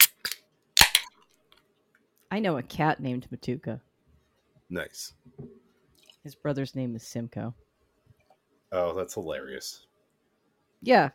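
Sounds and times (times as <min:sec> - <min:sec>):
beer cans cracked open: 0:00.0 - 0:01.1
speech: 0:02.3 - 0:03.9, 0:04.7 - 0:05.6, 0:06.2 - 0:07.6, 0:08.7 - 0:09.9, 0:10.8 - 0:11.1.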